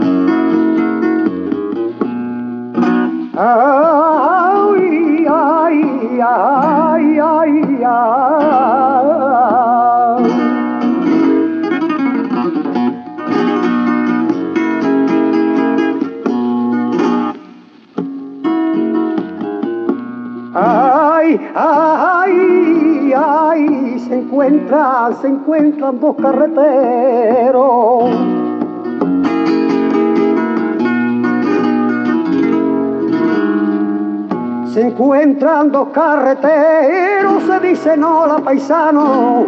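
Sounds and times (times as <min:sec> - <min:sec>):
tango and flamenco music: 0:00.0 - 0:39.4.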